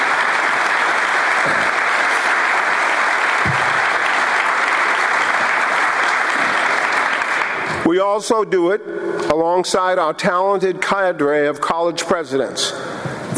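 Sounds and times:
audience applause: 0.0 - 7.8
speech: 8.0 - 12.9.

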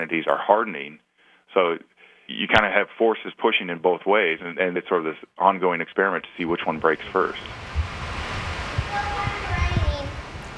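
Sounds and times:
speech: 0.0 - 7.8
hard rain on a farm: 6.6 - 10.5.

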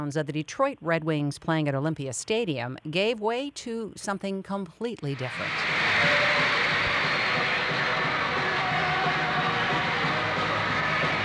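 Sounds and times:
speech: 0.0 - 6.6
30,000 teenage fans screaming at a concert: 5.2 - 11.2.

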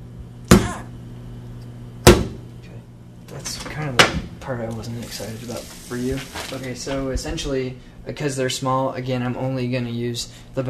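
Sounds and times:
something whacked against a kitchen sink: 0.5 - 0.8, 2.0 - 2.4
speech: 3.3 - 10.6.

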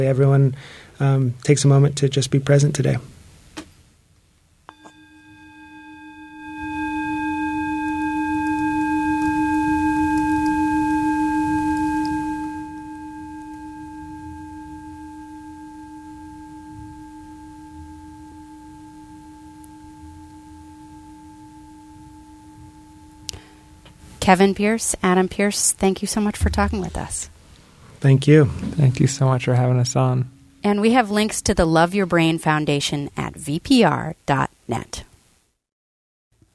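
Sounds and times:
speech: 0.0 - 3.1, 24.3 - 27.4, 28.0 - 35.1
single bell struck and ringing: 4.7 - 24.0.

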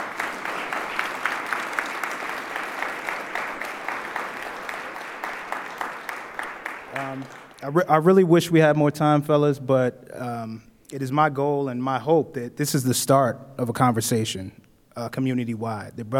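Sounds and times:
audience applause: 0.0 - 7.6
speech: 7.0 - 16.1.

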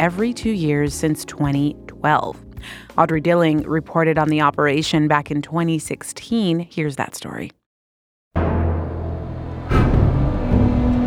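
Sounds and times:
speech: 0.0 - 7.6
dump truck engines on the beach: 8.4 - 11.0.

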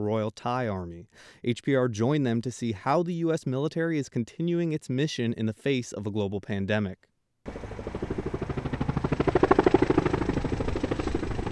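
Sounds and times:
speech: 0.0 - 7.9
helicopter rotor blades: 7.5 - 11.5.

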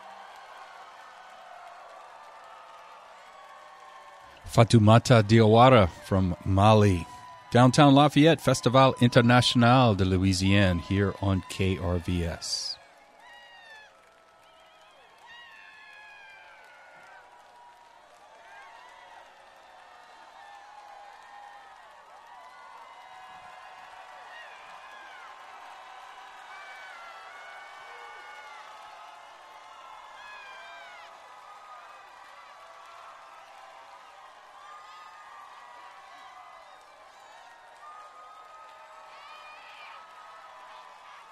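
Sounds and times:
festival crowd whooping and whistling: 0.0 - 4.4, 12.7 - 41.3
festival crowd at Festival International de Louisiane clapping: 0.0 - 41.3
speech: 4.4 - 12.8.

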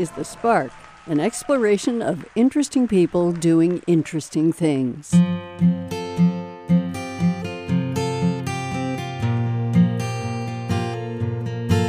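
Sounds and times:
speech: 0.0 - 5.9
custom-built luthier guitar played by a music teacher: 5.2 - 11.8.

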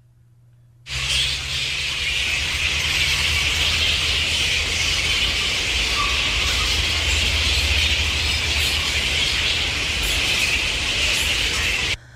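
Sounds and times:
flying foxes calling: 0.9 - 12.0.

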